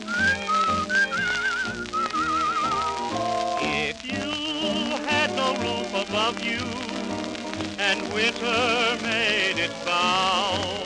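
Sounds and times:
cheerful whistled melody: 0.0 - 10.8
instrumental accompaniment: 0.0 - 10.8
speech: 6.1 - 6.9, 7.8 - 10.8.

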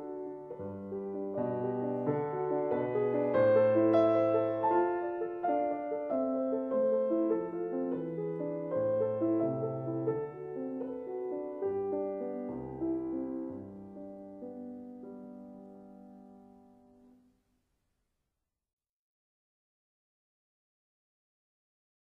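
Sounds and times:
piano lullaby: 0.0 - 17.2.

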